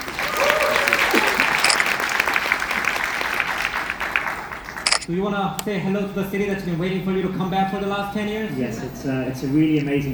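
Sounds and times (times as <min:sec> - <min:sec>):
audience applause welcoming two guests onto a stage in Seoul: 0:00.0 - 0:10.1
laughter: 0:00.0 - 0:10.1
speech: 0:05.1 - 0:10.1.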